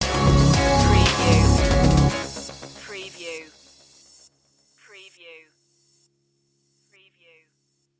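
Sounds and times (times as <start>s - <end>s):
summer music stinger: 0.0s - 3.2s.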